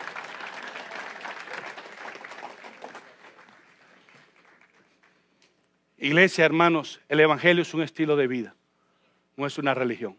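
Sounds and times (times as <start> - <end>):
audience applause: 0.0 - 5.1
speech: 6.0 - 8.6, 9.4 - 10.1.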